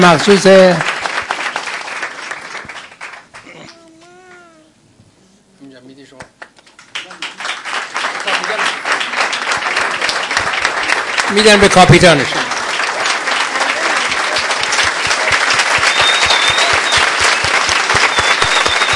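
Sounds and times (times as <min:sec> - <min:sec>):
speech: 0:00.0 - 0:00.9, 0:11.4 - 0:12.4
audience applause for a winning team at a cup presentation: 0:00.0 - 0:03.6, 0:06.8 - 0:18.9.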